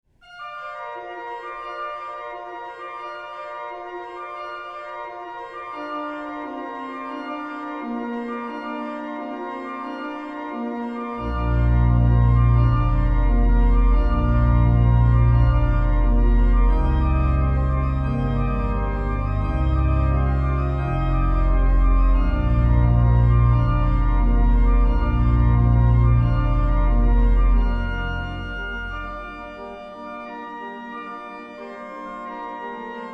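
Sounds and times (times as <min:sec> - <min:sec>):
carillon playing a toccata: 0:11.2 - 0:29.8.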